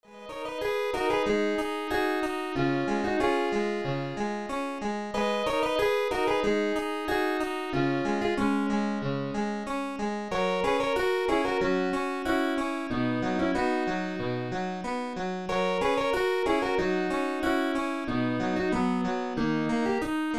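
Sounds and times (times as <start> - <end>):
harpsichord: 0.1 - 20.3.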